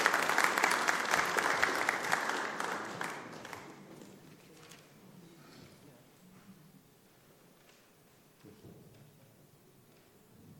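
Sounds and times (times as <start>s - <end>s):
audience applause welcoming a speaker to the stage: 0.0s - 4.1s.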